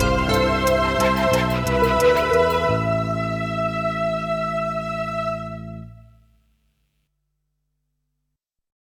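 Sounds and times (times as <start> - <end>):
Spanish trip hop music: 0.0 - 4.4.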